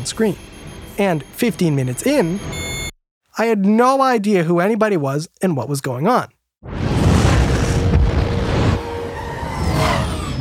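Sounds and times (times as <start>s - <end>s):
speech: 0.0s - 2.6s, 3.4s - 6.8s
movie explosions: 6.6s - 10.3s.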